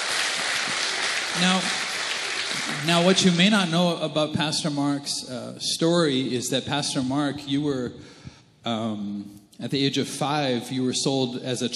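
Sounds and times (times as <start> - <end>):
audience clapping: 0.0 - 3.8
speech: 1.4 - 1.8, 2.8 - 11.7.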